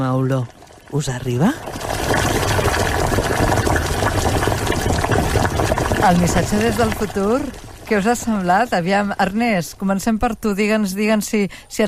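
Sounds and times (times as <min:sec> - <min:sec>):
speech: 0:00.0 - 0:02.6, 0:06.0 - 0:11.8
water boiling with vegetables: 0:00.0 - 0:11.8.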